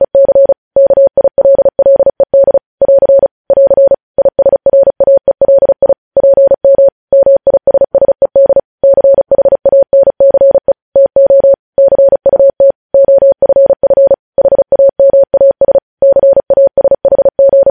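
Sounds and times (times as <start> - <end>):
Morse code steady pure tone around 600 Hz: 0.0 - 17.6.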